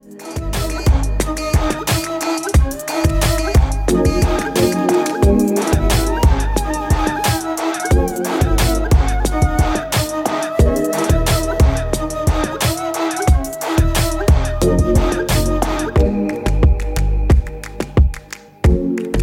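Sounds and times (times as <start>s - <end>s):
music ringtone: 0.1s - 19.1s.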